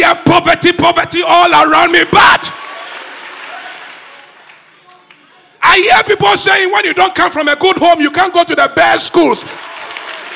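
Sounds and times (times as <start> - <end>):
speech: 0.2 - 2.6, 5.6 - 9.9
audience at a speech clapping hands angrily: 2.4 - 5.6, 9.4 - 10.3.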